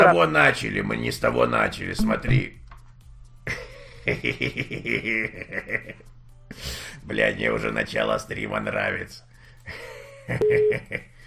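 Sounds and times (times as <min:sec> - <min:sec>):
speech: 0:00.1 - 0:02.6, 0:03.4 - 0:11.1
short electronic phone dialing beeps: 0:10.4 - 0:10.7
faint steady phone tone: 0:10.4 - 0:10.8.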